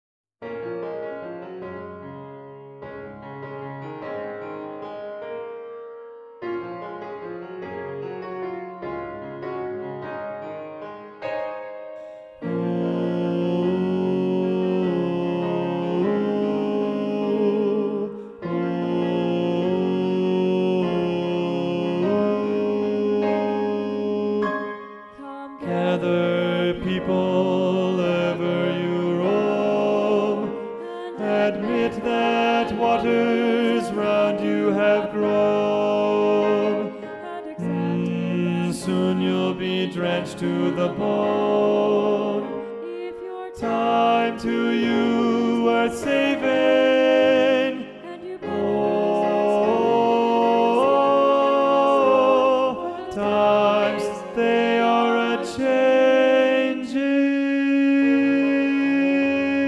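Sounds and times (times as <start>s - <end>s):
tenor singing: 12.4s - 59.6s.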